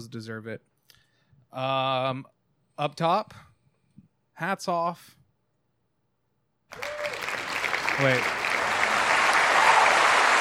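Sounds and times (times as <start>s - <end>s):
speech: 0.0s - 0.8s, 1.5s - 3.5s, 4.4s - 5.2s, 8.0s - 8.4s
applause from a large crowd: 6.7s - 10.3s.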